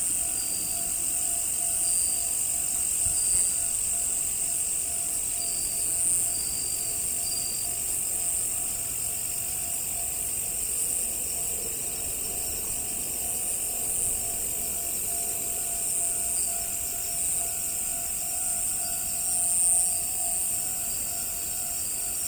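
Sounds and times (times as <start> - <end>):
crickets chirping in a trilling chorus: 0.0 - 22.2.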